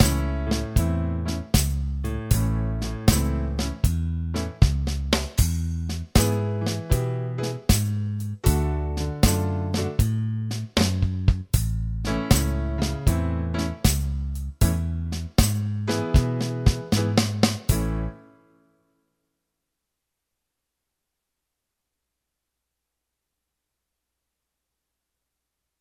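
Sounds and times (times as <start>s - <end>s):
slow blues shuffle in A: 0.0s - 18.2s.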